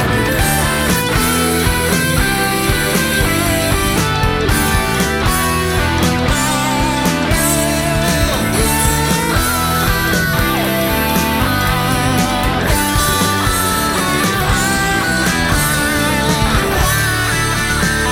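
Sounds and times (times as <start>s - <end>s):
karaoke full mix: 0.0s - 18.1s.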